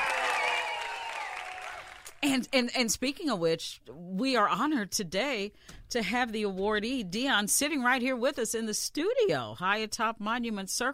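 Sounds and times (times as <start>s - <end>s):
round of applause: 0.0s - 2.2s
speech: 2.2s - 10.9s.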